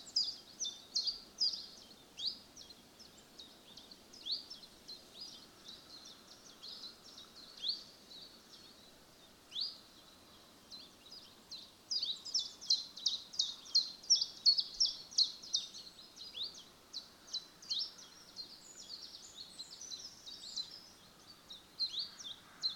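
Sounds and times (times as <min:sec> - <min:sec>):
common chiffchaff song: 0:00.0 - 0:22.7.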